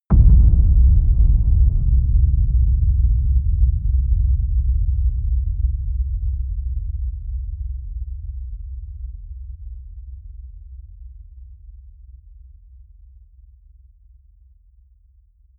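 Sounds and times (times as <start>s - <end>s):
low long boom: 0.1s - 11.1s.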